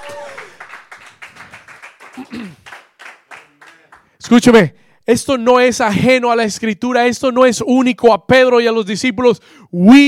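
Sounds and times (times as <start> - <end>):
applause: 0.0 - 4.2
speech: 2.2 - 2.7, 4.3 - 10.0.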